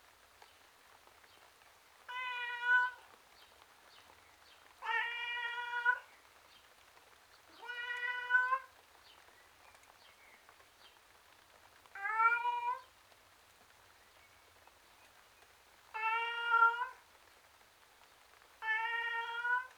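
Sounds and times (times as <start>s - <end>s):
domestic tom cat meowing outside: 2.1s - 3.0s, 4.8s - 6.1s, 7.5s - 8.7s, 12.0s - 12.9s, 16.0s - 17.0s, 18.6s - 19.7s.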